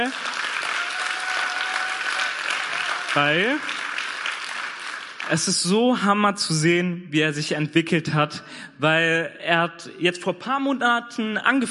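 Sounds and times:
speech: 0.0s - 0.3s, 3.1s - 3.8s, 5.3s - 11.6s
audience applause: 0.0s - 5.6s.

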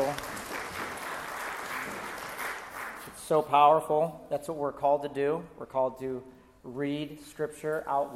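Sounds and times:
crowd clapping: 0.0s - 3.2s
speech: 3.3s - 8.1s.

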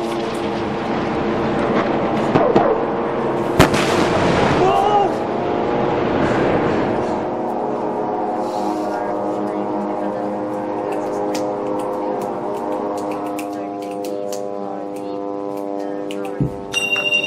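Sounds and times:
droning hum: 0.0s - 17.2s
airstrike explosions: 1.6s - 2.8s, 3.5s - 7.0s.

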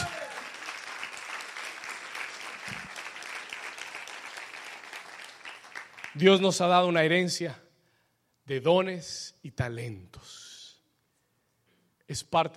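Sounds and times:
audience applause: 0.0s - 6.2s
speech: 6.2s - 7.6s, 8.5s - 10.5s, 12.1s - 12.5s.

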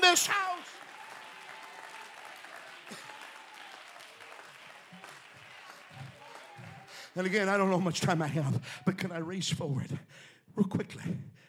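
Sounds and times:
audience clapping: 0.0s - 8.5s
speech: 0.1s - 0.5s, 7.2s - 11.4s.

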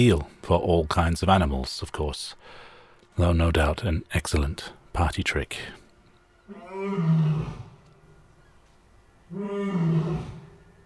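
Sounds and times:
speech: 0.0s - 2.6s, 3.2s - 5.8s, 6.5s - 7.6s, 9.3s - 10.4s
Asian lion roaring: 6.5s - 7.8s, 9.3s - 10.6s.

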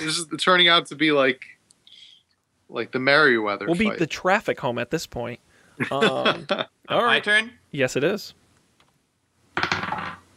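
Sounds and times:
speech: 0.0s - 1.6s, 2.7s - 8.4s, 9.6s - 10.0s
laughter: 5.8s - 6.7s
dice being rolled: 9.6s - 10.3s.

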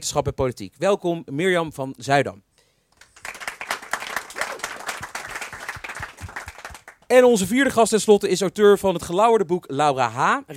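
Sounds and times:
speech: 0.0s - 2.5s, 7.1s - 10.5s
audience applause: 3.0s - 7.1s.

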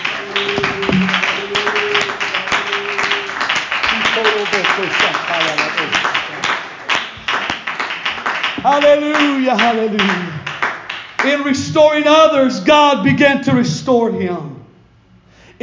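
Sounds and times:
audience clapping hands: 0.0s - 11.6s
speech: 0.4s - 0.9s, 8.7s - 10.4s, 11.2s - 14.5s.

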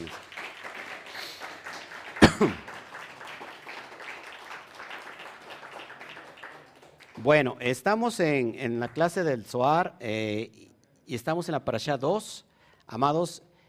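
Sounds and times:
applause: 0.0s - 9.3s
speech: 2.4s - 2.7s, 7.2s - 13.5s.

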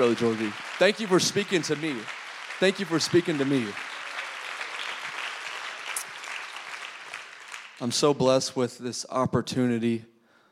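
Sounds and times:
speech: 0.0s - 3.9s, 7.8s - 10.1s
crowd clapping: 0.0s - 8.4s.

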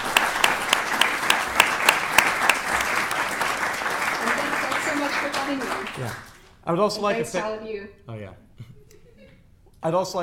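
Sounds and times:
audience applause: 0.0s - 6.4s
speech: 6.0s - 8.4s, 9.8s - 10.2s.

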